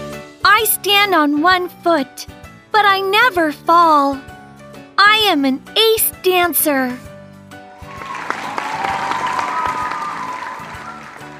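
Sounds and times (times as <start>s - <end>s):
speech: 0.6s - 4.3s, 5.0s - 7.1s
excited crowd shouting and cheering: 7.8s - 11.3s
large audience clapping: 7.8s - 11.3s.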